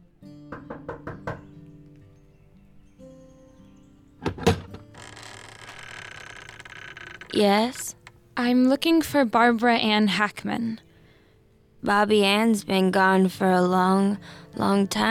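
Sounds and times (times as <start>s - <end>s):
knocking on a wooden front door: 0.5s - 1.5s
speech: 7.4s - 7.8s, 8.4s - 10.8s, 11.8s - 15.0s.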